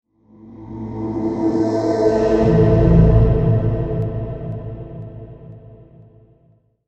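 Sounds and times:
scary soundscape: 0.3s - 6.4s.

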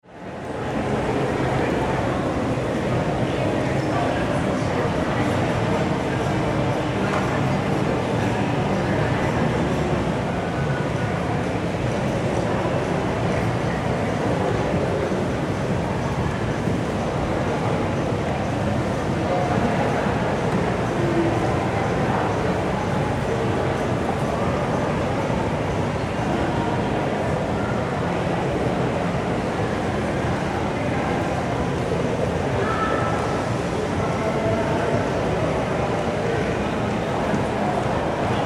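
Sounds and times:
mall crowd walla: 0.0s - 38.4s.

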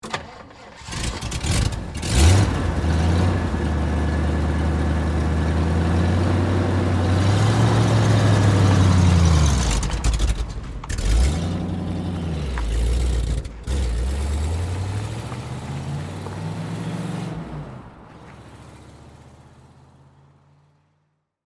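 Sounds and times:
Jeep automobile starting and driving away: 0.0s - 21.2s.

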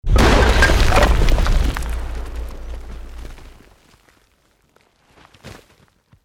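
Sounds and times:
medium stone rock explosion: 0.0s - 3.7s.

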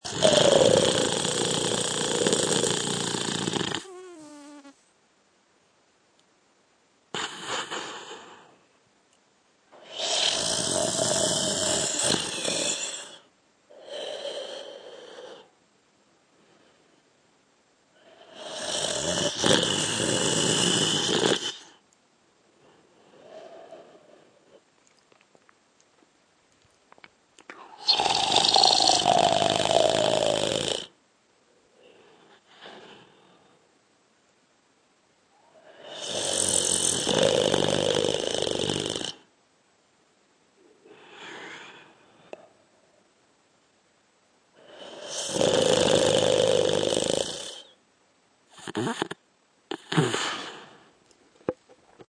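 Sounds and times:
man snoring: 0.0s - 4.7s, 9.8s - 15.5s, 18.0s - 21.8s, 27.6s - 31.0s, 35.5s - 39.3s, 44.6s - 47.8s, 48.6s - 50.6s.

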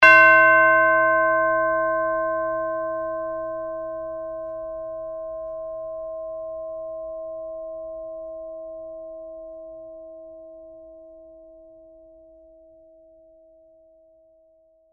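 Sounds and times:
tubular bell hit: 0.0s - 7.3s.

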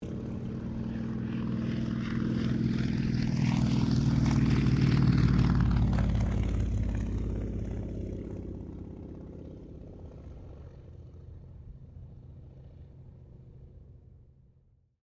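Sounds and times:
T-28D Trojan aircraft passing: 0.0s - 15.0s.

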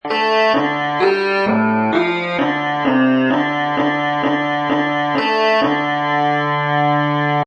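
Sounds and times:
bagpipe loop in D major at 130 BPM: 0.0s - 7.4s.

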